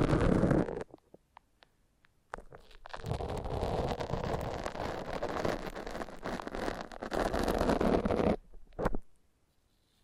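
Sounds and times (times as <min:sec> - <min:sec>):
foam massage rubbing and squelching: 0:00.0 - 0:00.9, 0:02.6 - 0:08.5.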